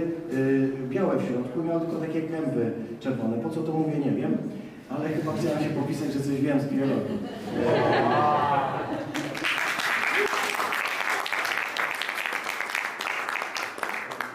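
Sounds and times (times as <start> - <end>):
speech: 0.4 - 9.2
people laughing: 6.7 - 10.5
clapping: 9.1 - 14.3.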